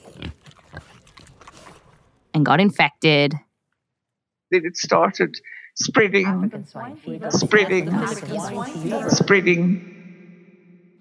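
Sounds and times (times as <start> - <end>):
pig grunting and snuffling: 0.0 - 2.0
pig chewing-like smacks: 0.0 - 2.3
speech: 2.4 - 3.5, 4.5 - 9.9.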